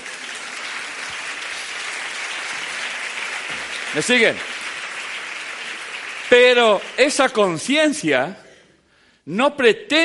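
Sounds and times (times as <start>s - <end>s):
audience clapping: 0.0s - 8.0s
speech: 3.9s - 4.5s, 6.3s - 8.4s, 9.3s - 10.0s.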